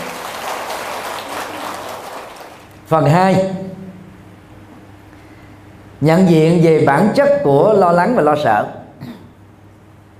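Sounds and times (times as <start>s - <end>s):
crowd applauding: 0.0s - 2.8s
speech: 2.9s - 3.7s, 6.0s - 8.8s.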